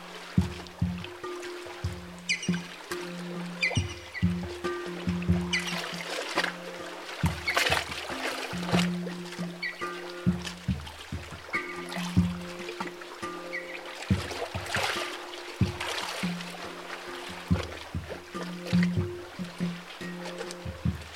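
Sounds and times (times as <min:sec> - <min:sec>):
mountain lake water lapping against a jetty: 0:00.0 - 0:21.1.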